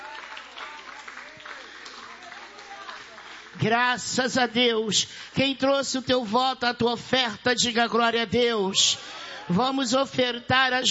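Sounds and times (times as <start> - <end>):
faint voices and cheers: 0.0 - 3.2
church audience applauding: 0.0 - 3.8
speech: 3.6 - 10.8.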